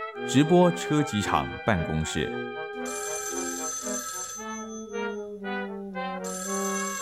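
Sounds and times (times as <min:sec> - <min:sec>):
speech: 0:00.2 - 0:03.1
telephone ringing: 0:02.8 - 0:05.2, 0:06.2 - 0:06.9.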